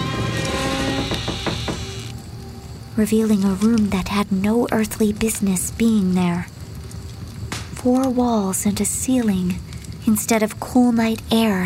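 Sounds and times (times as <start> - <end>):
door opening with screeching metal on metal creak: 0.0 - 2.2
speech: 3.0 - 6.5, 7.8 - 11.6.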